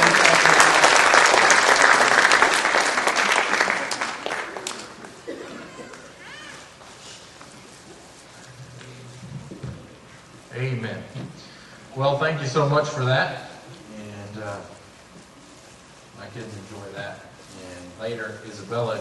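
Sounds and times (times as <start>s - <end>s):
audience applause welcoming performers: 0.0s - 6.2s
speech: 12.2s - 13.5s, 18.1s - 18.9s.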